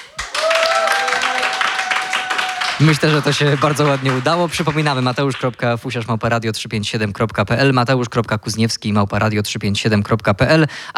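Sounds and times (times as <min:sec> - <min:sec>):
studio audience applause in a radio studio: 0:00.0 - 0:05.7
speech: 0:02.8 - 0:10.9.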